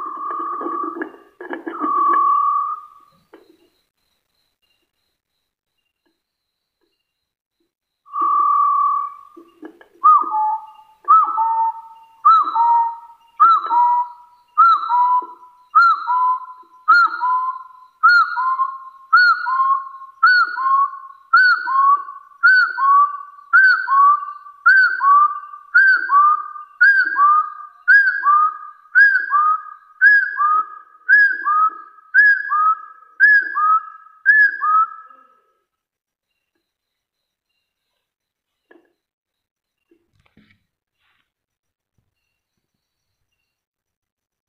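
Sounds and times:
hill partridge whistling calls: 0.0 - 3.6, 8.1 - 35.6.

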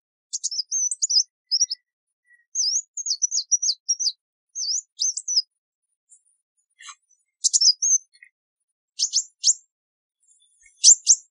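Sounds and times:
sunbird calls: 0.3 - 5.5, 6.8 - 8.3, 9.0 - 9.6, 10.2 - 11.2.

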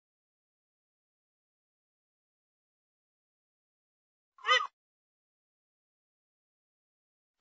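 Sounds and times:
grey-headed swamphen calls: 4.4 - 4.7.

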